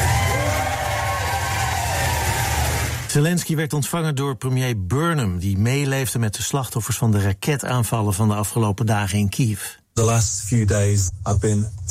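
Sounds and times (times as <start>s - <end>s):
crowd cheering welcoming president in London: 0.0s - 3.1s
speech: 3.1s - 11.8s.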